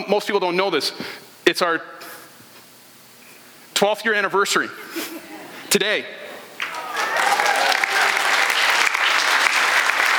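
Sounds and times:
speech: 0.1s - 2.2s, 3.8s - 6.2s
applause: 6.6s - 10.1s.

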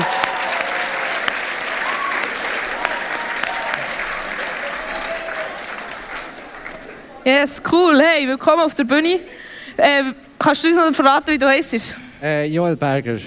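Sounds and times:
audience applause: 0.0s - 7.3s
speech: 7.3s - 13.2s.

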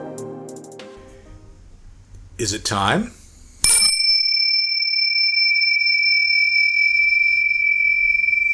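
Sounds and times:
speech: 2.4s - 3.2s
meditation gong: 3.6s - 8.5s.

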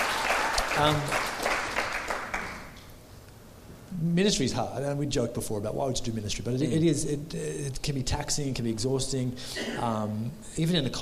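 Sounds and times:
crowd clapping: 0.0s - 2.8s
speech: 0.8s - 1.4s, 4.0s - 11.0s.

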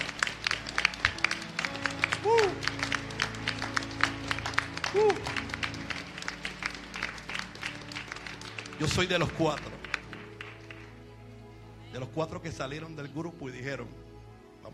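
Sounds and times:
audience applauding: 0.0s - 11.0s
speech: 8.8s - 9.8s, 12.0s - 14.0s.

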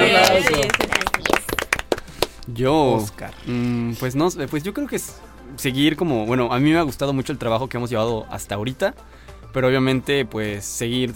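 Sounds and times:
small group applauding: 0.0s - 2.5s
speech: 2.5s - 11.1s.

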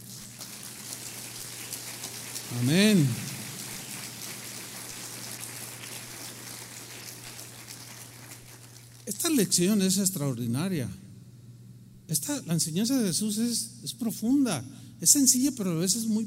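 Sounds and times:
crowd applause: 0.0s - 9.0s
speech: 2.5s - 3.2s, 9.1s - 11.0s, 12.1s - 16.2s.

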